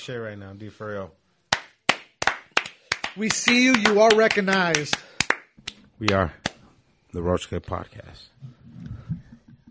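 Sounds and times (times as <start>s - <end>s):
speech: 0.0s - 1.2s, 3.2s - 6.4s, 7.1s - 9.0s
round of applause: 1.5s - 6.2s.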